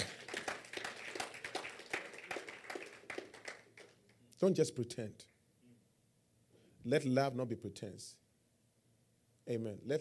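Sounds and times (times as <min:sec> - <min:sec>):
group clapping: 0:00.0 - 0:04.3
speech: 0:04.4 - 0:05.3, 0:06.8 - 0:08.2, 0:09.5 - 0:09.9.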